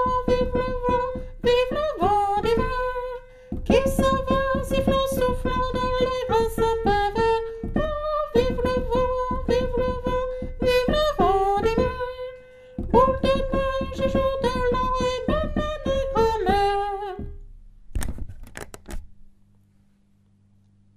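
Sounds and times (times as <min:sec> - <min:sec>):
soprano singing: 0:00.0 - 0:17.4.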